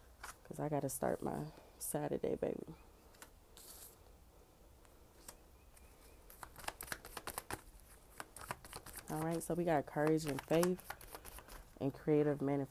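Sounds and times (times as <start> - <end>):
speech: 0.5 - 2.9, 9.1 - 10.9, 11.8 - 12.6
playing cards shuffling: 3.1 - 4.0, 5.1 - 11.7.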